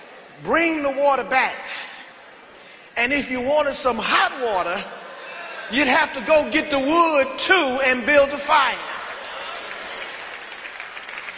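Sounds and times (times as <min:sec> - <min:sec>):
speech: 0:00.4 - 0:01.9, 0:03.0 - 0:05.0, 0:05.7 - 0:08.9
audience clapping: 0:08.8 - 0:11.3.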